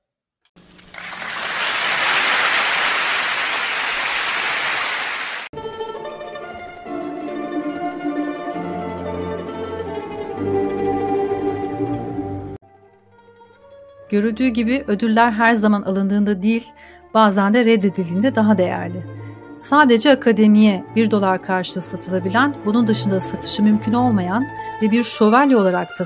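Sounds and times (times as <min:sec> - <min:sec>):
audience applause at award ceremony: 0:00.7 - 0:05.5
music with sustained tones and a low bass line: 0:05.6 - 0:26.0
speech: 0:14.1 - 0:26.0.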